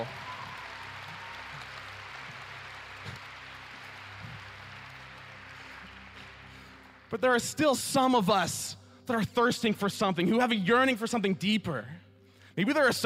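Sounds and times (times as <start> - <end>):
audience clapping: 0.0 - 8.3
speech: 7.1 - 12.0, 12.6 - 13.0.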